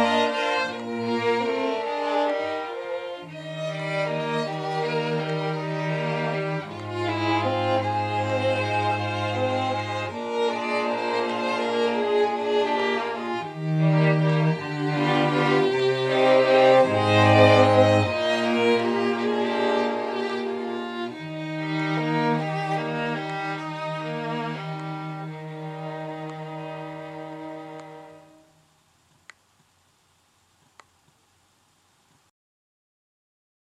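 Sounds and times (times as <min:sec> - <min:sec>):
string quartet: 0:00.0 - 0:28.5.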